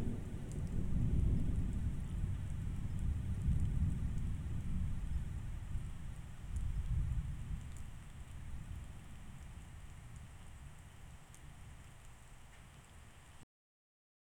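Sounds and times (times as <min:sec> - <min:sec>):
single clean thunderclap: 0:00.0 - 0:07.8.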